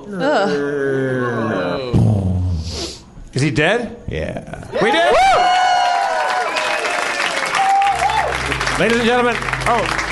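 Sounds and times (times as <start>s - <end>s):
speech: 0.0s - 2.0s, 3.4s - 5.2s, 8.8s - 10.0s
crowd cheering: 4.7s - 10.0s
crowd clapping: 5.5s - 10.0s.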